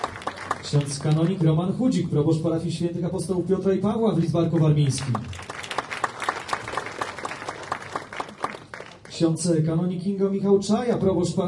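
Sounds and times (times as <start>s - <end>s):
audience applause at a church gathering honouring parish priests: 0.0s - 1.6s, 4.8s - 9.2s
speech: 0.6s - 5.5s, 9.2s - 11.4s.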